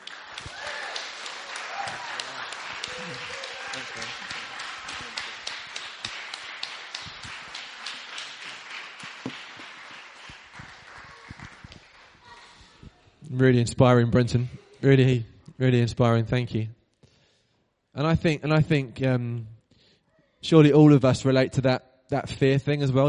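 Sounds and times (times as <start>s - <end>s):
audience cheering: 0.0s - 12.3s
applause: 0.0s - 12.9s
speech: 13.4s - 16.8s, 18.0s - 19.5s, 20.4s - 23.0s.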